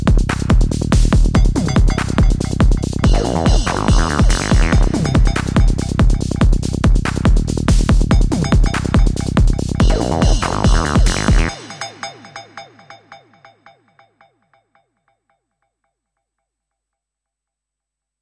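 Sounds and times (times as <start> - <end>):
psychedelic drum and bass music: 0.0 - 13.5.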